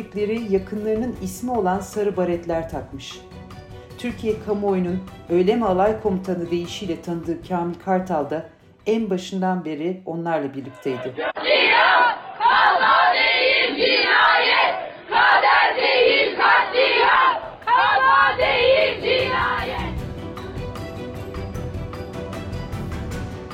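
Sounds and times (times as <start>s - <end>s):
speech: 0.2s - 3.3s, 4.0s - 12.1s
crowd of families chanting protest slogans: 10.9s - 20.0s.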